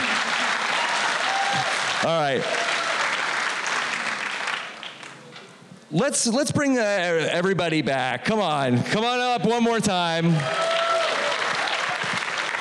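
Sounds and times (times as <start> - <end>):
crowd applauding: 0.0 - 5.2, 10.2 - 12.5
speech: 2.0 - 2.6, 5.9 - 10.8.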